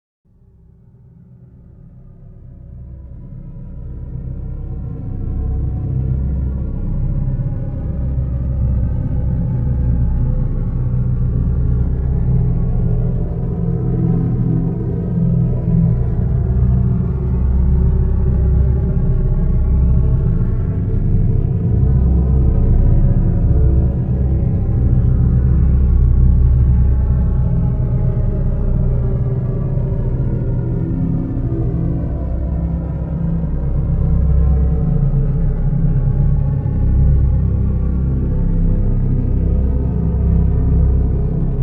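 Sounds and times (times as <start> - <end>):
subsonic bass: 3.1 - 41.6.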